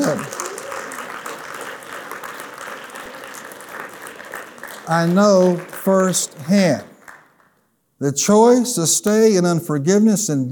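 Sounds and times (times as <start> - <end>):
audience hand clapping: 0.0 - 7.7
speech: 4.9 - 6.9, 8.0 - 10.5.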